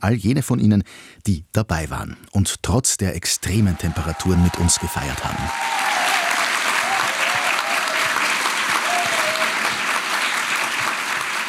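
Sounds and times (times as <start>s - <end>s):
speech: 0.0s - 6.1s
audience applause at festival: 3.7s - 11.4s.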